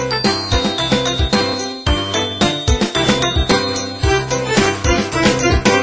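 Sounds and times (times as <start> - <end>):
Apple iPhone 5 built-in ringtone: 0.2 - 5.7.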